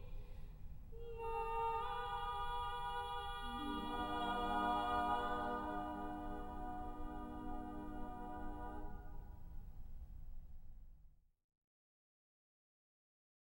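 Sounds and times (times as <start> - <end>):
Bulgarian polyphonic singing: 1.0 - 9.1.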